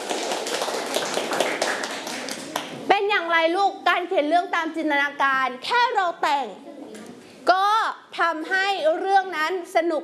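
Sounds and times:
children clapping for their classmates: 0.0 - 2.8
speech: 3.4 - 6.8, 8.2 - 10.0.

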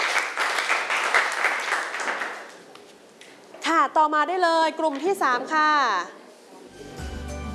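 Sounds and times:
students applauding in a classroom: 0.0 - 2.7
speech: 3.9 - 6.2.

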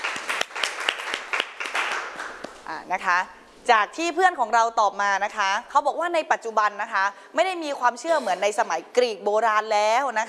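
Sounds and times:
audience applause: 0.0 - 2.4
speech: 2.7 - 10.2.

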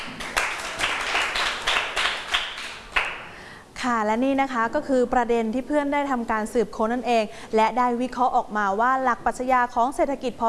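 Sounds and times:
classroom clapping for a student: 0.0 - 3.3
speech: 3.8 - 10.4.

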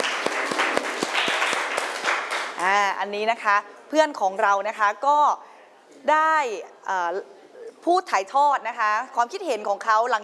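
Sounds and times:
loud applause from a group for a group representative: 0.0 - 2.7
sharper claps in rhythm: 0.0 - 2.8
speech: 2.6 - 10.2.

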